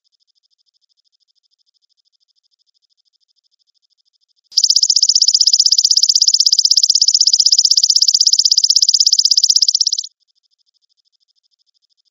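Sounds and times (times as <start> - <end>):
grasshopper trilling: 4.6 - 10.1.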